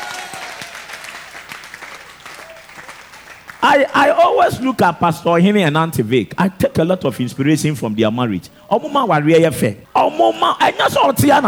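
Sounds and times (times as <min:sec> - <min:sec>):
crowd applauding: 0:00.0 - 0:04.8
speech: 0:03.6 - 0:11.4.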